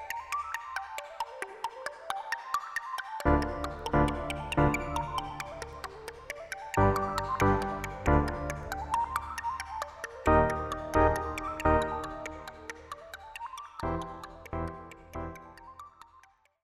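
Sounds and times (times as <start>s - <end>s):
Arp Quadra synthesizer improvisation: 3.3s - 16.0s.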